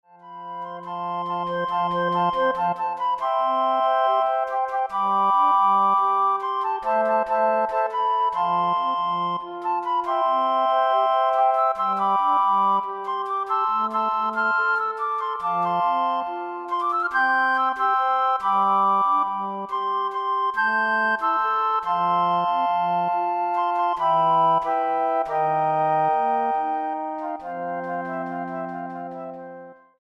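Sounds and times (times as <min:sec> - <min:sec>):
flute ensemble playing: 0:00.1 - 0:29.9.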